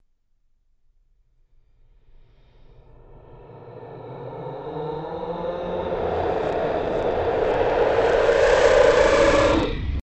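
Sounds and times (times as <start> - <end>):
raw screams: 2.4 - 10.0.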